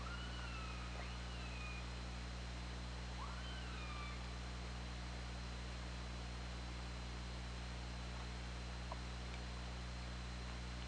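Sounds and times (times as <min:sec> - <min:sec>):
killer whale calls: 0:00.0 - 0:01.9, 0:03.2 - 0:04.3
constant low hum: 0:00.0 - 0:10.8.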